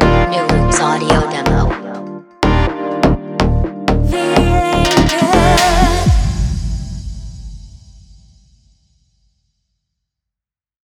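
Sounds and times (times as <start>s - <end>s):
deep house drum kit: 0.0s - 8.2s.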